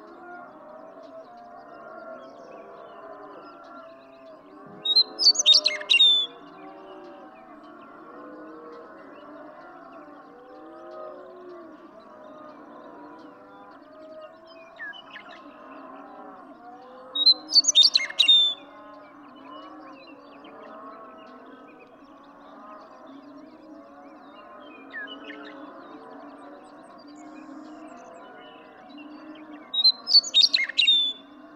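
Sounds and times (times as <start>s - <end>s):
western meadowlark singing: 4.8s - 6.4s, 17.2s - 18.6s, 29.7s - 31.3s.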